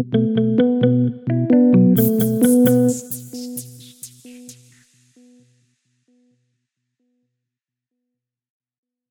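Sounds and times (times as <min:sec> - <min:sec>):
music without beat: 0:00.0 - 0:05.6.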